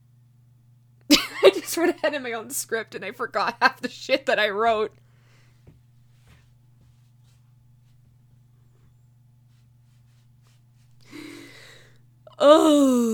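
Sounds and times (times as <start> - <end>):
speech: 1.5 - 5.0, 12.4 - 13.1
person yawning: 12.3 - 13.1.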